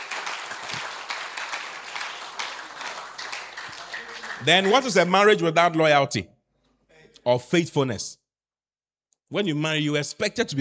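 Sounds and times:
audience clapping: 0.0 - 5.4
speech: 4.4 - 6.4, 7.2 - 8.2, 9.3 - 10.6.

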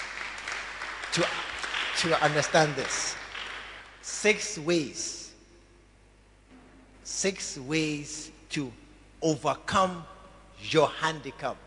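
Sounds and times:
audience clapping: 0.0 - 4.1
speech: 1.2 - 3.2, 4.0 - 5.2, 7.1 - 11.6.

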